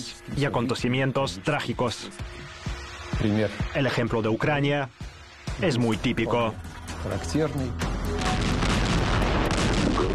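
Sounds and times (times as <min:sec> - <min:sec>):
speech: 0:00.0 - 0:02.6, 0:03.2 - 0:05.0, 0:05.6 - 0:07.9, 0:10.0 - 0:10.1
artillery fire salvos: 0:08.2 - 0:10.1.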